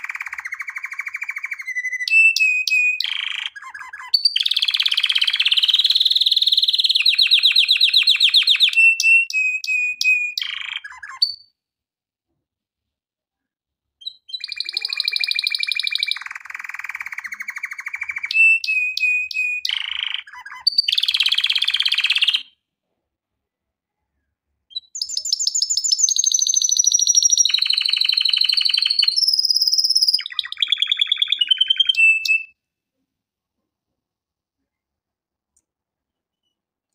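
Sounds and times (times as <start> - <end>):
canary song of rapid trills and rolling tours: 0.0 - 11.5, 14.0 - 22.6, 24.1 - 32.6.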